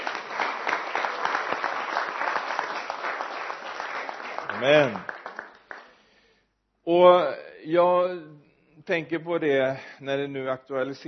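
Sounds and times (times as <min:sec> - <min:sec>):
audience applauding: 0:00.0 - 0:06.0
speech: 0:04.6 - 0:05.1, 0:06.9 - 0:11.0.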